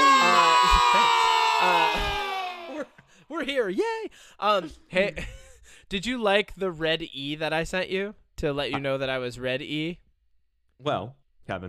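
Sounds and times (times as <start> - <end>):
crowd cheering and whooping with applause sound effect: 0.0 - 2.9
speech: 3.4 - 10.0, 10.8 - 11.6.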